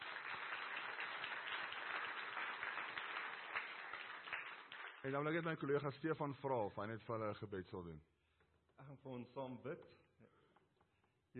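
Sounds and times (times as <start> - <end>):
audience clapping hands: 0.0 - 5.6
speech: 5.0 - 8.1, 8.9 - 10.4.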